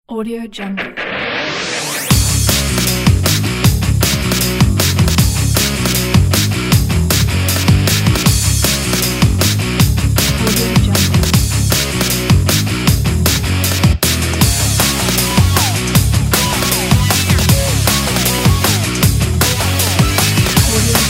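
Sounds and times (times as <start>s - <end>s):
energetic breakbeat: 0.8s - 21.0s.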